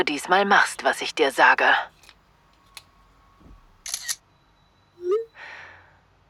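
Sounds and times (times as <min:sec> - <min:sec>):
speech: 0:00.0 - 0:01.9
phone camera shutter taking a photo: 0:03.5 - 0:04.2.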